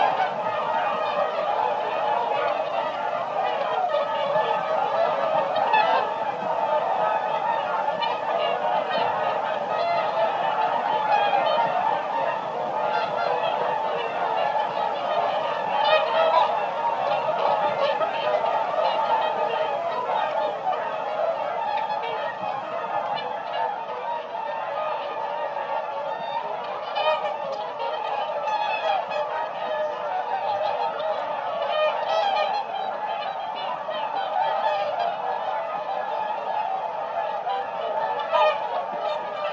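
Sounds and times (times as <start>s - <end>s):
whooper swan: 0.0s - 39.5s.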